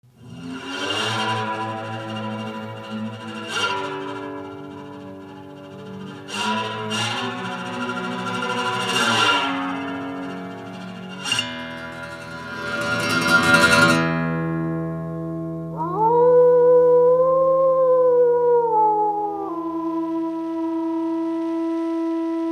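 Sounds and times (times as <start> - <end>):
lonely cowboy guitar melody: 0.0 - 22.4.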